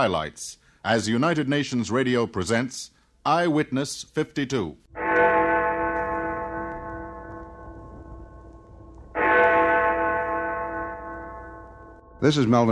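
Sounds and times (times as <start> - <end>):
speech: 0.0 - 4.8, 12.2 - 12.7
Big Ben great bell striking in London: 4.9 - 12.7.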